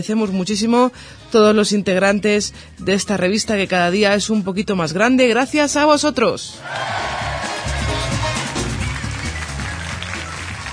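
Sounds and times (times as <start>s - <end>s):
speech: 0.0s - 7.3s
applause: 6.6s - 10.7s.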